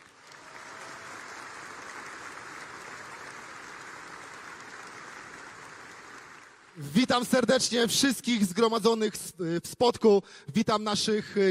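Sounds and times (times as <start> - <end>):
audience applause: 0.0 - 6.9
speech: 6.8 - 11.4.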